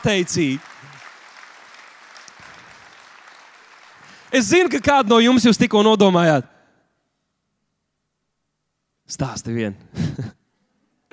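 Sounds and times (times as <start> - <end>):
speech: 0.0 - 0.7, 4.3 - 6.5, 9.1 - 10.4
audience applause: 0.0 - 5.8.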